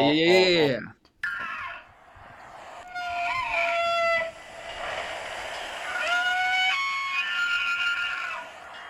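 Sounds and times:
speech: 0:00.0 - 0:01.0
bull elk screaming: 0:02.9 - 0:04.4, 0:05.8 - 0:08.8.

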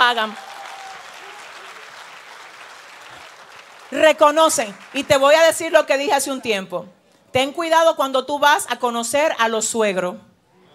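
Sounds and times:
crowd applause: 0:00.0 - 0:05.8
speech: 0:00.1 - 0:00.5, 0:03.9 - 0:10.3.

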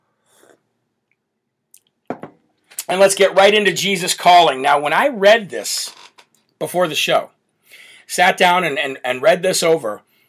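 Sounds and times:
slurping coffee: 0:00.3 - 0:00.6
speech: 0:02.9 - 0:06.0, 0:06.6 - 0:07.4, 0:08.1 - 0:10.1.

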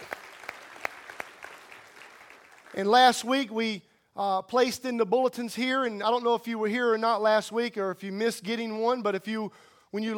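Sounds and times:
audience clapping hands: 0:00.0 - 0:03.3
speech: 0:02.7 - 0:10.1.

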